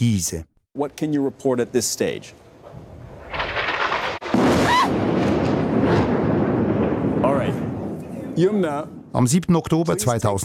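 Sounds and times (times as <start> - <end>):
speech: 0.0 - 2.8, 8.4 - 10.4
air strike explosion on high-rise building in Gaza City: 2.7 - 9.1.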